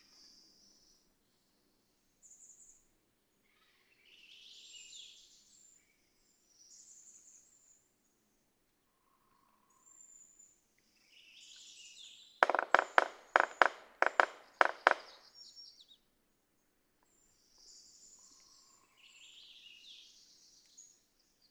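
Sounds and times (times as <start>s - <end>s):
red-breasted sapsucker drumming: 12.4s - 15.2s.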